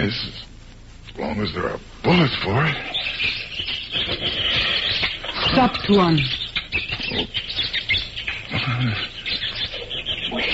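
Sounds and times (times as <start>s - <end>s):
speech: 0.0s - 0.4s, 1.2s - 3.4s, 5.5s - 6.4s, 7.2s - 7.4s, 8.7s - 9.1s
monkeys chattering in jungle: 2.1s - 10.5s.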